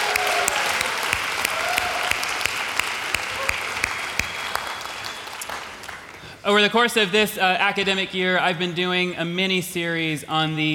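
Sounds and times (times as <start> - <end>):
audience applause for a gospel choir: 0.0 - 6.3
speech: 6.5 - 10.7.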